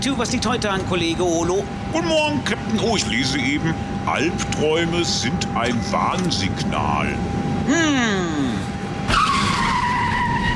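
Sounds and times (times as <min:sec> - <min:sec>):
speech: 0:00.0 - 0:08.6
car tires skidding and squealing: 0:09.1 - 0:10.5.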